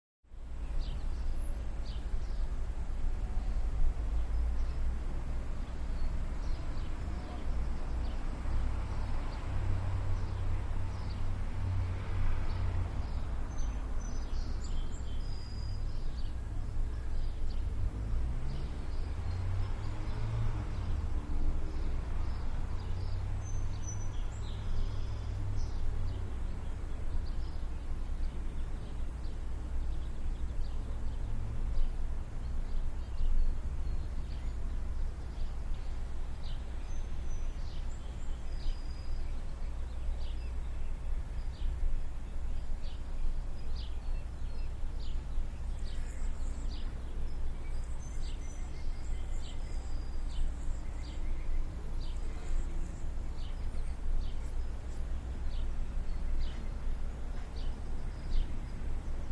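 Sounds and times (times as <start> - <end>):
suburban traffic in daytime: 0.2 - 59.3.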